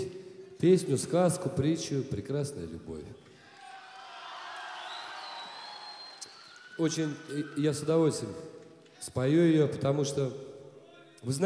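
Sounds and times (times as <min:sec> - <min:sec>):
speech: 0:00.6 - 0:03.3, 0:06.8 - 0:10.5, 0:11.2 - 0:11.4
crowd shouting and cheering: 0:03.3 - 0:09.1.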